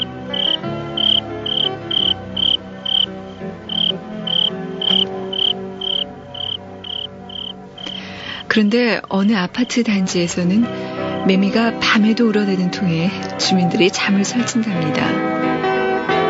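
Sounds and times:
crickets chirping: 0:00.0 - 0:08.5
speech: 0:08.5 - 0:15.3.

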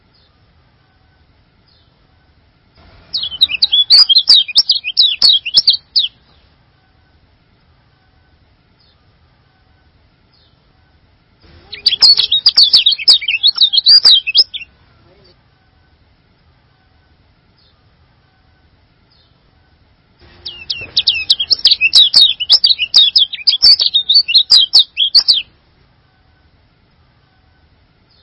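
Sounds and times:
songbird singing a high chattering song: 0:03.1 - 0:06.5, 0:11.6 - 0:14.7, 0:20.2 - 0:25.5.

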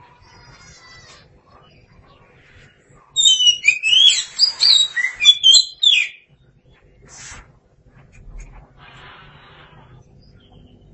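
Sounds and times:
Oriental magpie-robin whistling song: 0:03.2 - 0:06.3.

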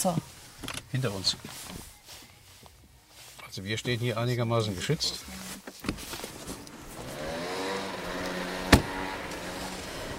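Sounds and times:
speech: 0:00.0 - 0:01.8, 0:03.6 - 0:05.4
car engine running as the car is re-parked: 0:06.2 - 0:10.1
sharp thump: 0:08.6 - 0:09.0.

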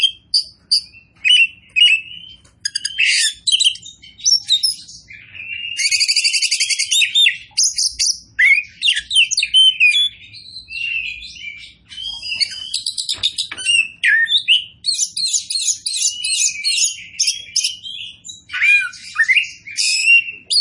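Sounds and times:
Oriental magpie-robin kacer poci form singing loudly: 0:00.0 - 0:20.5.

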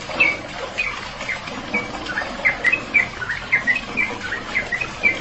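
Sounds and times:
bird giving rapid squeaky chirps: 0:00.2 - 0:05.2.

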